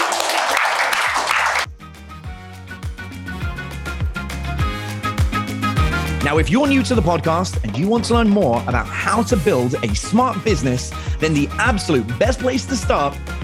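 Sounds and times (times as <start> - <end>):
audience applause: 0.0 - 1.7
upbeat music with thumping beat and bass: 1.0 - 13.4
speech: 6.3 - 13.3.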